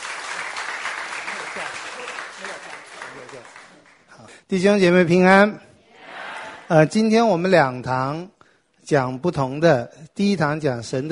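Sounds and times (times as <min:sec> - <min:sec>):
audience applause: 0:00.0 - 0:04.0
speech: 0:04.5 - 0:05.7, 0:06.7 - 0:11.1.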